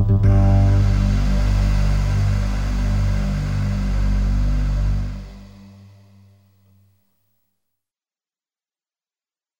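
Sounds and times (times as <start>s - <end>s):
music in a room: 0.0s - 6.8s.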